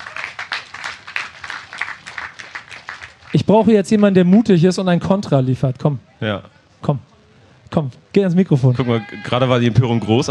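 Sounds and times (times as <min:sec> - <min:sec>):
audience applause: 0:00.0 - 0:04.5
speech: 0:03.3 - 0:07.1, 0:07.7 - 0:10.2.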